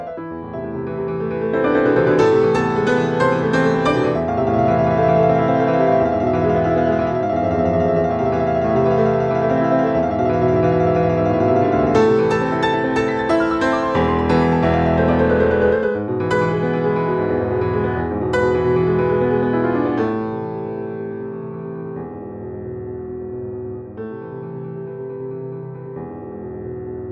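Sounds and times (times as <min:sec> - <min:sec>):
arpeggio study: 0:00.8 - 0:20.1.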